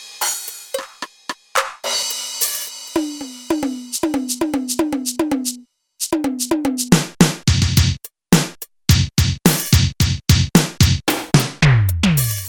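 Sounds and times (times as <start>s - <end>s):
dry drum kit: 0.0s - 12.4s.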